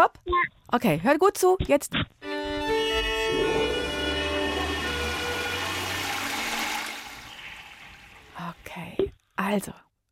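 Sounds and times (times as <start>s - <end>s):
speech: 0.1s - 2.2s, 8.8s - 9.8s
toilet flush: 2.7s - 8.6s.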